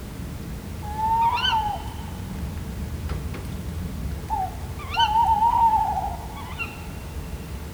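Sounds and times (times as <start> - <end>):
two tawny owls: 0.9 - 2.9, 4.1 - 7.7.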